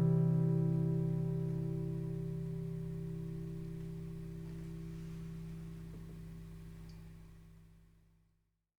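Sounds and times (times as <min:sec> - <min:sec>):
picking mood music: 0:00.0 - 0:06.0.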